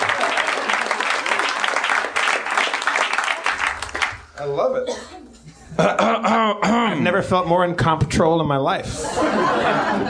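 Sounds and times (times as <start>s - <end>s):
live audience clapping: 0.0s - 4.4s
speech: 4.6s - 5.2s, 5.8s - 10.0s
laughter: 5.3s - 6.6s, 8.9s - 10.0s.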